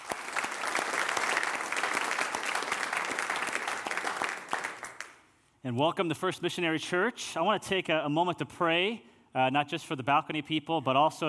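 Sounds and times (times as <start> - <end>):
audience round of applause: 0.0 - 5.2
speech: 5.6 - 11.2.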